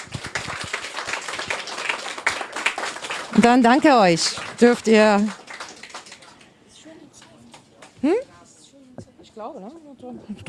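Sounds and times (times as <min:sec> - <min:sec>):
audience applause: 0:00.0 - 0:08.0
speech: 0:03.3 - 0:05.4, 0:09.4 - 0:10.4.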